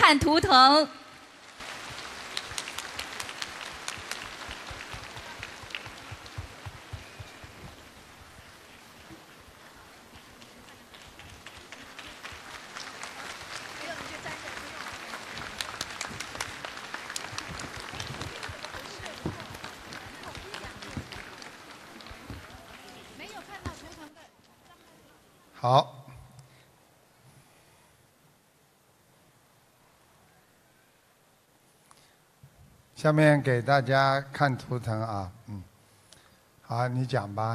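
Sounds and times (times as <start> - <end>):
speech: 0.1 - 1.0, 25.7 - 25.9, 33.0 - 35.7, 36.7 - 37.5
audience applause: 1.6 - 24.2.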